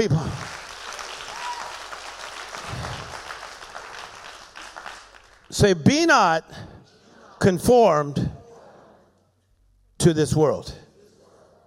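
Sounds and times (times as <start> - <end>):
audience clapping hands: 0.0 - 5.7
speech: 5.5 - 6.7, 7.4 - 8.3, 10.0 - 10.8.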